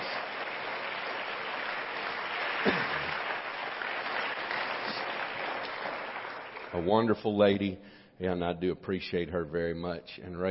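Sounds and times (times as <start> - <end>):
audience clapping hands: 0.0 - 7.2
speech: 6.7 - 10.4.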